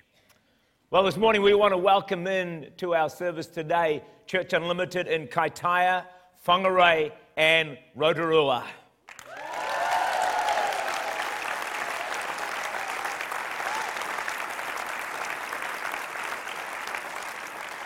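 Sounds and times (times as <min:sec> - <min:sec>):
speech: 0:00.9 - 0:08.8
crowd applause: 0:09.1 - 0:17.8.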